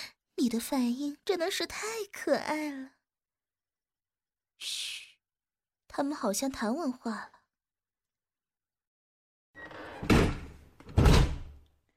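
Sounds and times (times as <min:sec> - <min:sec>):
speech: 0:00.4 - 0:03.0, 0:06.0 - 0:07.4
locked door being tried, thumping and rattling: 0:09.8 - 0:11.6.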